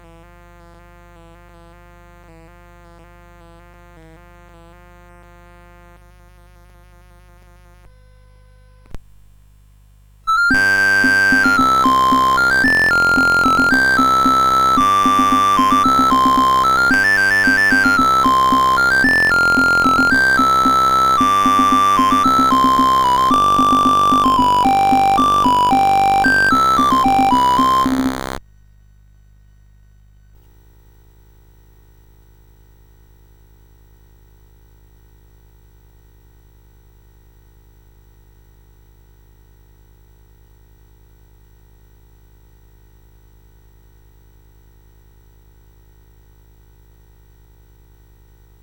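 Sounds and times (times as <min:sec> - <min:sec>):
courante on CSG8580R5 sound chip: 0:10.3 - 0:28.4.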